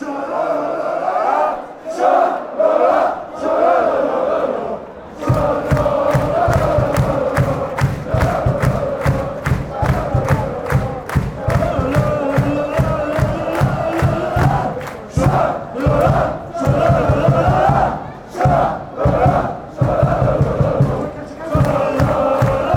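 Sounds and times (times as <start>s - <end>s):
fans chanting: 0.0s - 22.7s.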